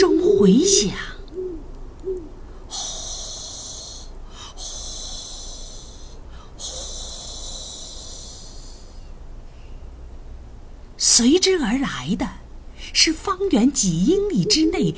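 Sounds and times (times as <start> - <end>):
speech: 0.0 - 1.1, 11.5 - 12.4, 13.2 - 14.9
great horned owl hooting: 0.0 - 9.2, 14.1 - 14.9
high-pitched hiss: 2.6 - 9.8.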